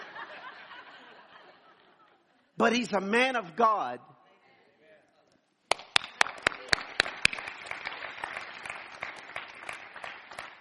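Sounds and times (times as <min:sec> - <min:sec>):
laughter: 0:00.0 - 0:02.6
speech: 0:02.6 - 0:04.1
hands clapping: 0:05.7 - 0:10.5.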